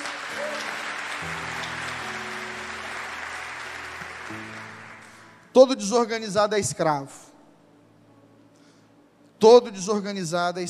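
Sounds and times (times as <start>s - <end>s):
audience applause: 0.0s - 5.4s
speech: 5.6s - 7.3s, 9.4s - 10.6s.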